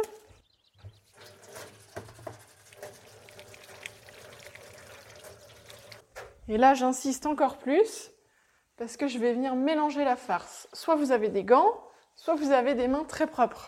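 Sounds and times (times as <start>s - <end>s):
washing hands under running tap water: 1.0s - 6.1s
speech: 6.5s - 8.1s, 8.8s - 13.6s.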